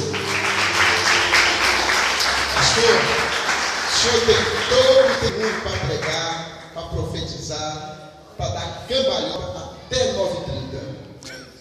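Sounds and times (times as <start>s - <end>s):
audience applauding: 0.0s - 6.8s
speech: 2.8s - 3.2s, 4.0s - 8.0s, 8.9s - 10.9s.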